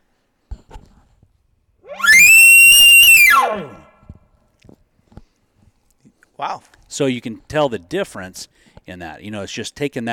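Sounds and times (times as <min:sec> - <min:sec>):
bull giving an aggressive challenge bugle: 0:01.9 - 0:03.9
speech: 0:06.4 - 0:10.1.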